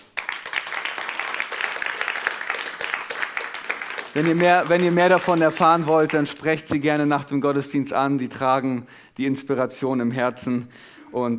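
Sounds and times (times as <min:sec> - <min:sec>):
crowd applauding: 0:00.0 - 0:06.5
speech: 0:04.2 - 0:11.3.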